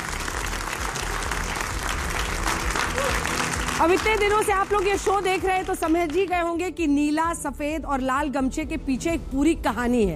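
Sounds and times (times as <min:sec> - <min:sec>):
audience applause: 0:00.0 - 0:06.4
speech: 0:03.8 - 0:10.1.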